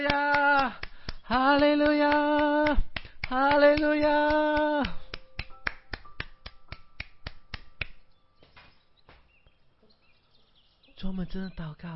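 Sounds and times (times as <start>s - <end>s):
rhythmic group clapping: 0.0s - 8.1s
speech: 1.3s - 4.9s, 11.0s - 11.9s.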